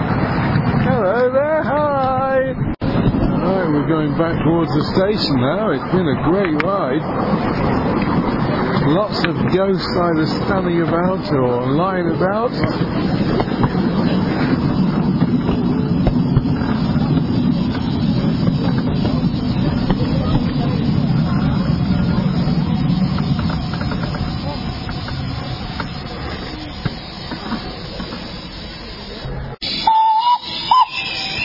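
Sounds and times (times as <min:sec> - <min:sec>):
heritage steam train arriving at station: 0:00.0 - 0:31.4
speech: 0:04.0 - 0:13.4
sharp break: 0:06.6 - 0:31.4
short high whistling tone: 0:29.6 - 0:31.4.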